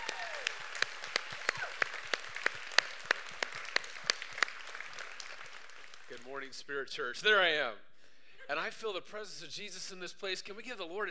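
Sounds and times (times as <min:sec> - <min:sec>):
audience applause: 0:00.0 - 0:06.4
speech: 0:06.2 - 0:07.9, 0:08.5 - 0:11.0.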